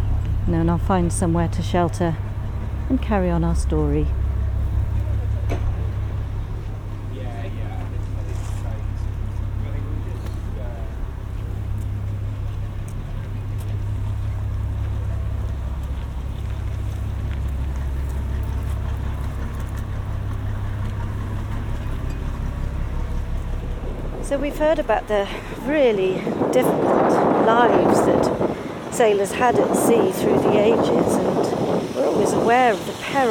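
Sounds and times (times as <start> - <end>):
low rumble of boat engines in a working harbour: 0.0 - 33.2
speech: 0.5 - 2.3, 2.9 - 4.2, 24.5 - 31.3, 32.0 - 33.2.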